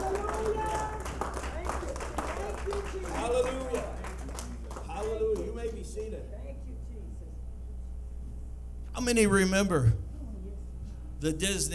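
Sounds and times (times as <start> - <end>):
audience clapping hands: 0.0 - 6.2
speech: 9.0 - 10.1, 11.2 - 11.7.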